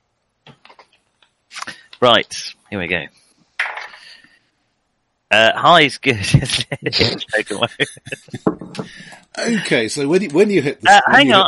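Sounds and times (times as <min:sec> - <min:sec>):
speech: 0:02.0 - 0:03.2, 0:05.3 - 0:11.4
laughter: 0:06.1 - 0:11.4
ten-sided dice rolling on a table: 0:08.4 - 0:09.0.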